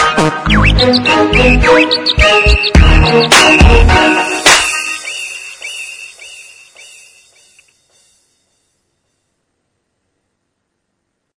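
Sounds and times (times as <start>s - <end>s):
bass: 0.0s - 4.0s.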